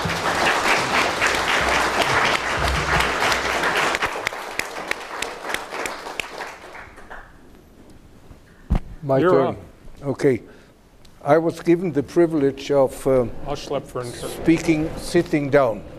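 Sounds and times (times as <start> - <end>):
audience applause: 0.0 - 7.4
speech: 9.1 - 10.6, 11.2 - 15.9.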